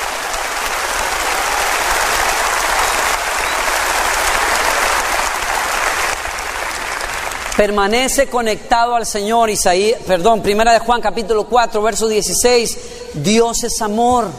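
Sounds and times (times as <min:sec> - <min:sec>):
crowd applause: 0:00.0 - 0:07.8
speech: 0:07.6 - 0:14.3.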